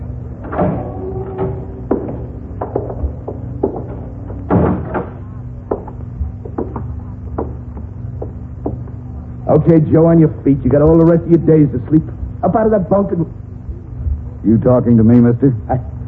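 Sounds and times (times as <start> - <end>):
prison cell door being opened with metallic clunks and rattles: 0.0 - 8.8
heavy thuds of a prison cell door: 0.3 - 9.0
speech: 9.6 - 13.4, 14.4 - 16.0.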